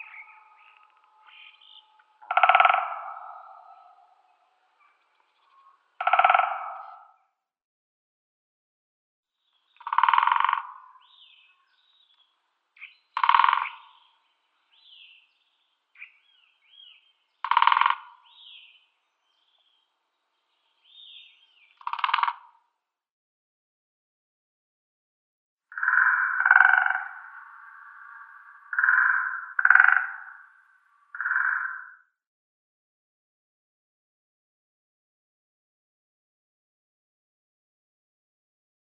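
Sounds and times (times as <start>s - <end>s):
Great Spotted Woodpecker drumming: 0.0s - 7.0s, 9.8s - 11.1s, 12.8s - 14.1s, 17.4s - 18.4s, 21.8s - 22.4s, 25.7s - 31.8s.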